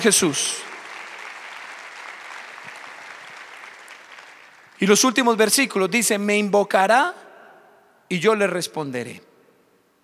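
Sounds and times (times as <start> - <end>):
speech: 0.0 - 0.7, 4.8 - 7.2, 8.1 - 9.3
audience applause: 0.0 - 5.1.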